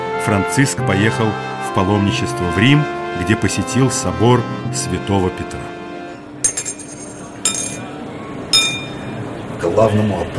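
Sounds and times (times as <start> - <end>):
speech: 0.2 - 5.7, 9.8 - 10.3
coins dropping and clinking: 6.5 - 8.0
low steady hum: 6.5 - 9.4.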